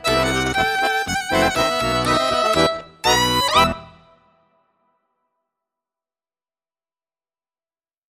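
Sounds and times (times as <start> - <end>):
violin: 0.0 - 4.3
accordion: 0.0 - 4.4.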